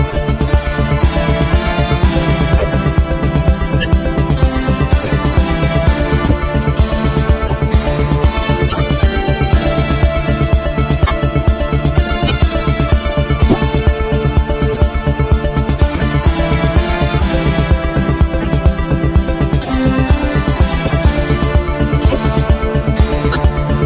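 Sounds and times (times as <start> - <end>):
synthesizer sounds: 0.1 - 14.8, 15.7 - 23.7.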